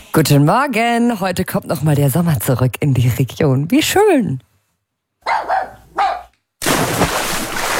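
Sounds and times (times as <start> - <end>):
speech: 0.2 - 4.5
dachshund and German shepherd barking at pool: 5.2 - 6.3
water splashing: 6.6 - 7.7.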